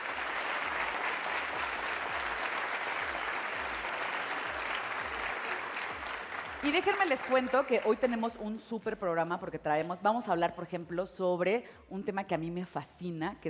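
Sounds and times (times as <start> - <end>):
audience applause: 0.0 - 8.2
speech: 6.6 - 13.4.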